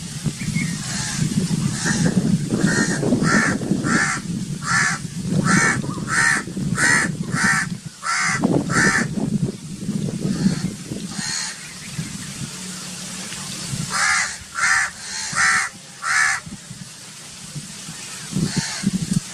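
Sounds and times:
calm bird ambience: 0:00.0 - 0:17.1
crow cawing: 0:00.9 - 0:09.1, 0:10.3 - 0:11.6, 0:13.9 - 0:16.5.

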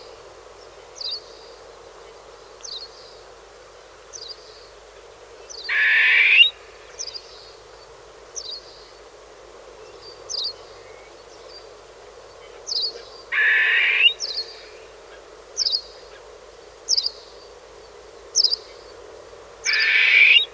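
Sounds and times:
partridge calling: 0:05.7 - 0:06.5, 0:13.4 - 0:14.7, 0:19.7 - 0:20.5.

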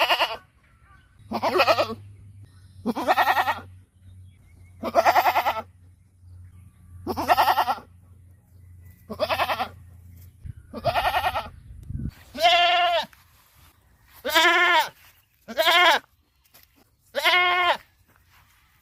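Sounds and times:
happy goat bleating: 0:00.0 - 0:02.1, 0:02.8 - 0:03.8, 0:04.8 - 0:05.8, 0:07.0 - 0:08.0, 0:09.1 - 0:09.9, 0:10.7 - 0:11.6, 0:12.2 - 0:13.2, 0:14.2 - 0:16.1, 0:17.1 - 0:17.9.

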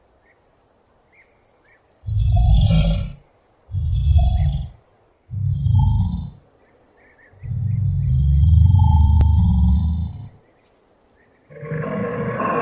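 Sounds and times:
Komodo dragon: 0:02.0 - 0:06.4, 0:07.3 - 0:10.4, 0:11.5 - 0:12.5.

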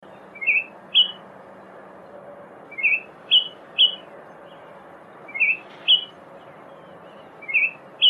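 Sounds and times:
bird chattering: 0:00.4 - 0:01.2, 0:02.7 - 0:04.1, 0:05.3 - 0:06.2, 0:07.0 - 0:08.0.

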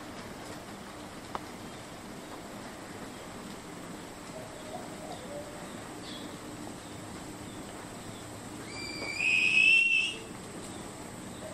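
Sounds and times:
faint background hiss: 0:00.0 - 0:11.5
bird whistled note: 0:08.6 - 0:10.3.

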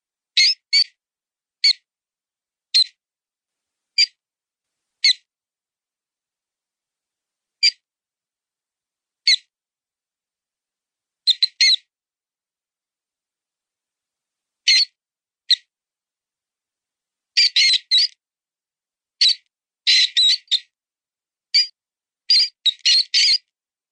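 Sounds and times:
mouse sound: 0:00.4 - 0:01.0, 0:01.6 - 0:01.8, 0:02.7 - 0:03.0, 0:05.0 - 0:05.3, 0:07.6 - 0:07.8, 0:09.2 - 0:09.5, 0:11.3 - 0:11.9, 0:14.7 - 0:15.7, 0:17.4 - 0:18.2, 0:19.2 - 0:20.7, 0:21.5 - 0:23.6.

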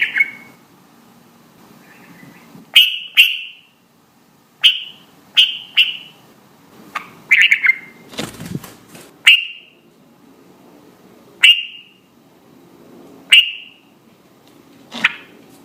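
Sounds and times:
red-vented bulbul calling: 0:00.0 - 0:00.6, 0:01.8 - 0:03.8, 0:04.6 - 0:06.2, 0:06.9 - 0:08.0, 0:09.2 - 0:09.8, 0:11.4 - 0:12.1, 0:13.3 - 0:13.9.

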